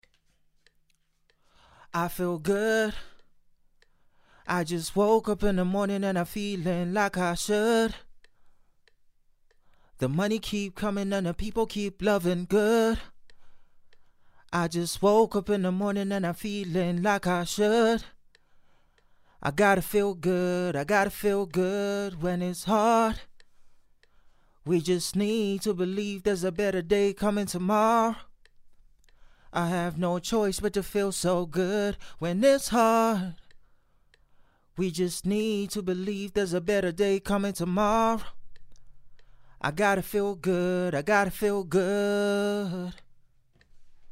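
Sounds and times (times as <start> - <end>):
pop a cappella vocals in A-flat: 0.0 - 33.7, 34.7 - 44.1.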